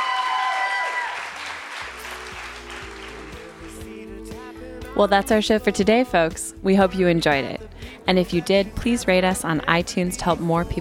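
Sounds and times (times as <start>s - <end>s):
audience applause: 0.0s - 4.0s
speech: 5.0s - 10.7s.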